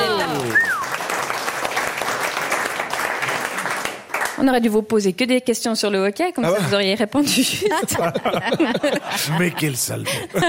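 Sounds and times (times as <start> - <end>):
person whooping: 0.0 - 0.9
audience applause at a live comedy show: 0.0 - 4.4
speech: 4.4 - 10.4
laughter: 6.4 - 10.4.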